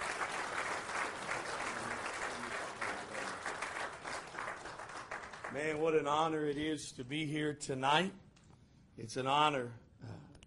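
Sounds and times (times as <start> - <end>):
audience applause welcoming a guest speaker at an evening gathering: 0.0 - 5.9
speech: 5.5 - 8.2, 9.0 - 9.8.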